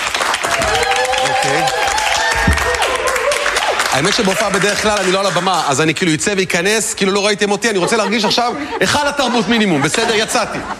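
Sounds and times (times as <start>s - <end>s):
audience applause: 0.0s - 5.9s
laughter: 2.4s - 4.9s, 7.4s - 10.7s
speech: 4.0s - 10.7s.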